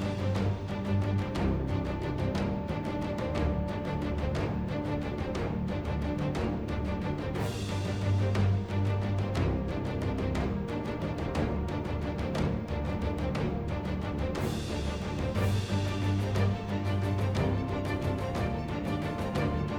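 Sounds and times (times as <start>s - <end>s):
action RPG game music loop: 0.0s - 19.7s.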